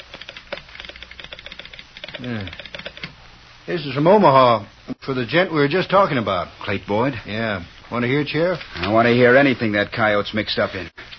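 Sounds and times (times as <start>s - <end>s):
telegraph sounder clicking out an incoming message: 0.0s - 3.2s
speech: 2.2s - 2.7s, 3.7s - 10.9s.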